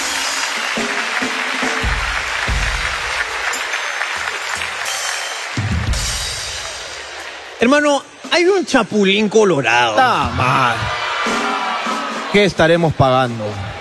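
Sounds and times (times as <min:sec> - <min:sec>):
crowd clapping: 0:00.0 - 0:07.5
speech: 0:07.6 - 0:11.5, 0:12.3 - 0:13.7.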